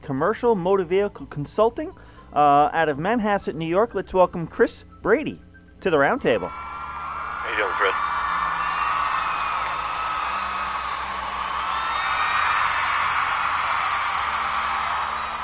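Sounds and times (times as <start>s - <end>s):
speech: 0.1s - 6.7s
crowd cheering and whooping: 6.4s - 15.4s.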